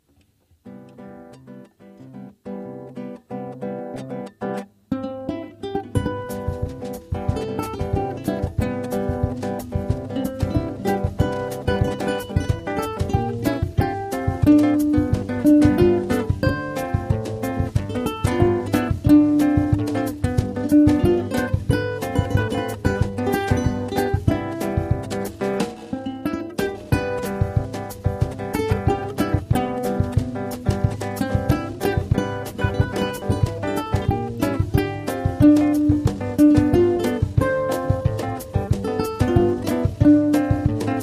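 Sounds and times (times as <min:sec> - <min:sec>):
samba music: 0:05.7 - 0:41.0.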